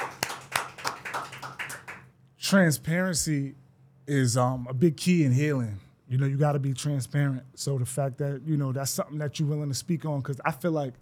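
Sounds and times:
small group of people clapping in a studio: 0.0s - 2.1s
speech: 2.5s - 10.9s.

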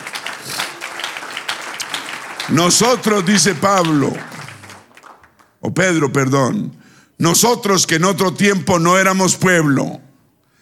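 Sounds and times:
crowd applauding: 0.0s - 5.6s
speech: 2.5s - 4.3s, 5.7s - 10.1s.

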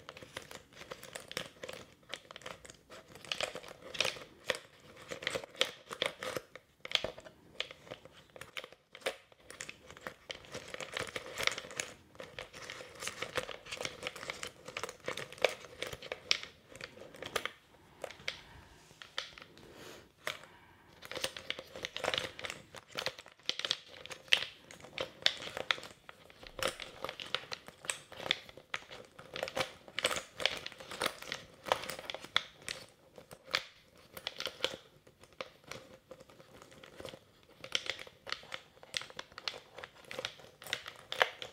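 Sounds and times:
plastic crinkling on a mic: 0.0s - 19.6s, 20.2s - 41.5s.

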